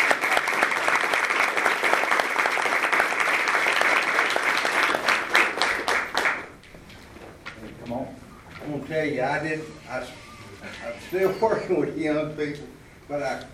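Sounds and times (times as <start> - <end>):
audience applause: 0.0 - 6.6
speech: 8.9 - 10.2, 10.8 - 13.5.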